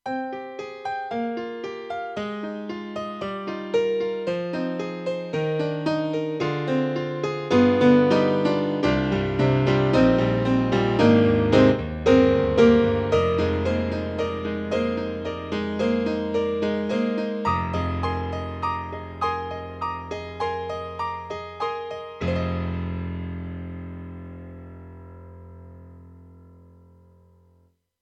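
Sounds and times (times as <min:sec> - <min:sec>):
mild grand piano: 0:00.0 - 0:27.6.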